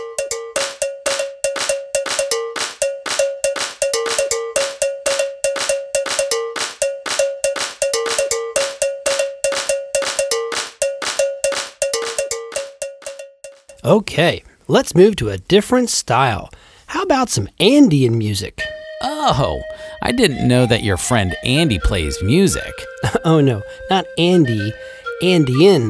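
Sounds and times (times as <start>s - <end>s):
hands clapping a steady beat: 0.0s - 13.7s
African alo bells playing a rhythm: 0.0s - 13.8s, 18.7s - 25.8s
speech: 13.8s - 18.6s, 19.2s - 25.8s.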